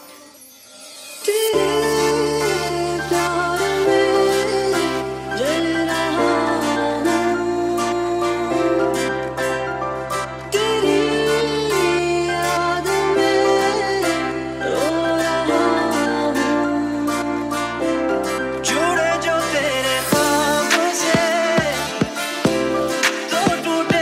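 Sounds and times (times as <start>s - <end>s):
Bollywood sad music ringtone: 0.0s - 24.0s.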